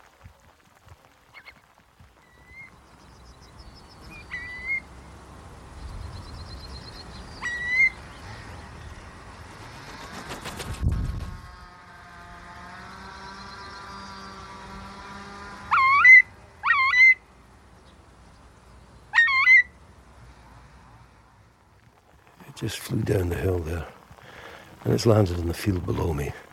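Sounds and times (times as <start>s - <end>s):
heavy rain hiss: 0.0s - 10.0s, 19.7s - 26.5s
curlew calling: 4.0s - 4.9s, 7.2s - 8.8s, 15.7s - 17.2s, 19.1s - 19.8s
speech: 22.6s - 24.0s, 24.8s - 26.5s.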